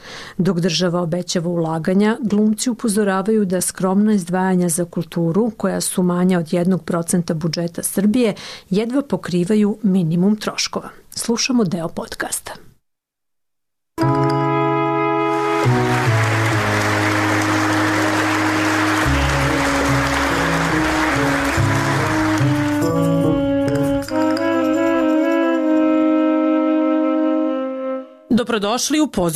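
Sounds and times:
speech: 0.4s - 12.7s, 28.4s - 29.3s
sustained music notes: 14.0s - 28.3s
theatre audience clapping for actors after a premiere in Belgrade: 15.3s - 24.8s.

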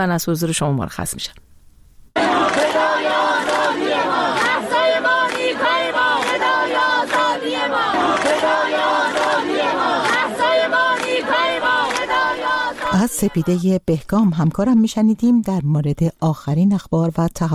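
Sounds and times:
speech: 0.0s - 1.5s, 13.0s - 17.5s
university students chanting protest slogans: 2.2s - 13.6s.

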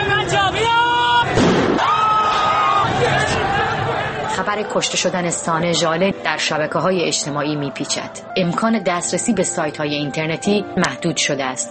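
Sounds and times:
crowd wailing: 0.0s - 5.6s
protest crowd voices: 0.0s - 8.1s
gunshots: 1.3s - 2.0s
speech: 4.4s - 11.6s.

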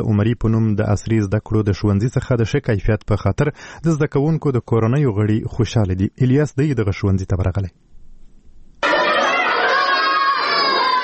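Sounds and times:
speech: 0.0s - 7.9s
children playing and shouting during school recess in Lashkar Gah: 8.8s - 11.0s.

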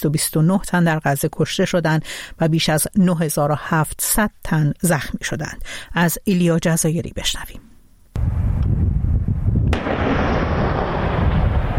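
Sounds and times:
speech: 0.0s - 7.6s
artillery fire: 8.2s - 11.7s.

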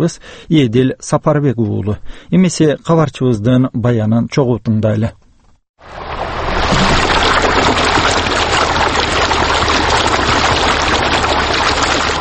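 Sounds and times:
speech: 0.0s - 5.2s, 5.8s - 6.0s
Naryn river roaring: 5.8s - 12.1s.

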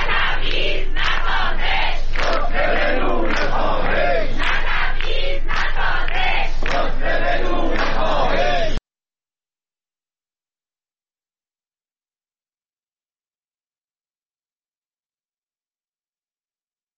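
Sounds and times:
protest crowd chanting slogans: 0.0s - 8.8s.

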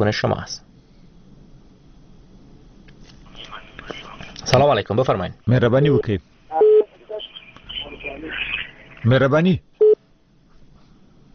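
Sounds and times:
speech: 0.0s - 0.7s, 4.5s - 6.6s, 9.0s - 9.7s
telephone busy tone after call dropped: 6.6s - 6.9s.

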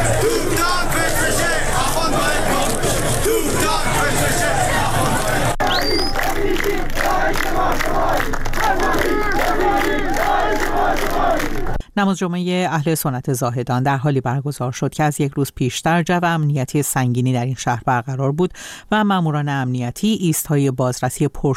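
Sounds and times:
protest crowd chanting anti-government slogans: 0.0s - 11.8s
speech: 12.0s - 21.5s.

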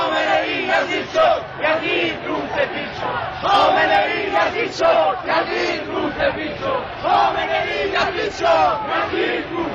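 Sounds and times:
protest crowd chanting slogans: 0.0s - 9.7s.

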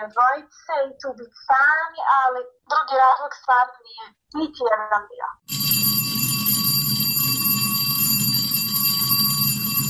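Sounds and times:
speech: 0.0s - 6.0s
school bell ringing: 5.5s - 9.8s.

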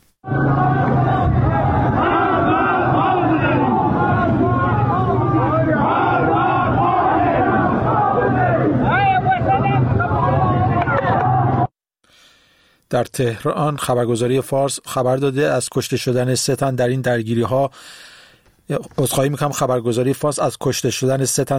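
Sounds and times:
large crowd of protesters chanting slogans: 0.2s - 11.7s
speech: 13.0s - 18.1s, 18.7s - 21.5s.

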